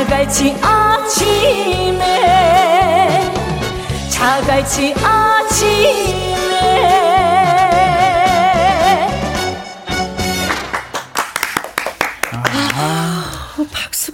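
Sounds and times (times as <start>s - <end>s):
person singing with vibrato: 0.0s - 9.8s
speech: 0.1s - 2.1s, 4.2s - 7.0s
audience clapping: 10.2s - 13.5s.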